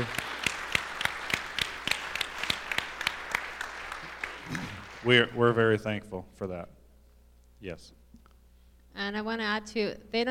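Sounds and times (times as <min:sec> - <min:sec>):
audience clapping: 0:00.0 - 0:05.7
speech: 0:05.0 - 0:06.8, 0:07.6 - 0:08.0, 0:09.0 - 0:10.2.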